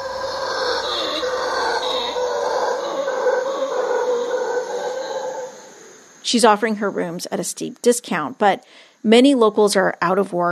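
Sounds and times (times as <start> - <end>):
howler monkeys calling at night: 0.0 - 7.2
speech: 6.3 - 10.5.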